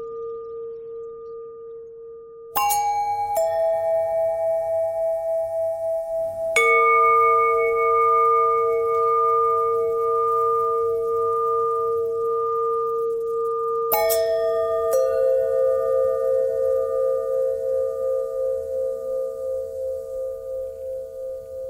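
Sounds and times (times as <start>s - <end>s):
long bell ringing: 2.6s - 12.9s, 13.6s - 21.6s.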